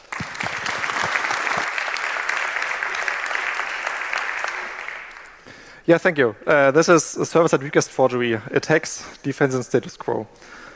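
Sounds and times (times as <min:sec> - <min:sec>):
audience applause: 0:00.0 - 0:05.5
speech: 0:05.9 - 0:10.6.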